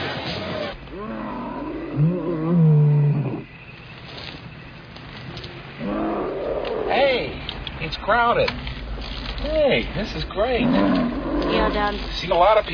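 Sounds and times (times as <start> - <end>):
bear roaring: 0.9 - 3.5, 5.8 - 7.3, 10.5 - 11.9
speech: 8.1 - 8.7, 9.4 - 12.7.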